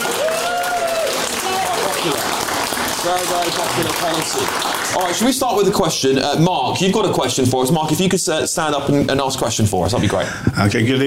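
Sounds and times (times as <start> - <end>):
raised voices and short whoops: 0.0 - 1.9
crowd applauding in the room: 0.0 - 5.8
speech: 3.0 - 11.0.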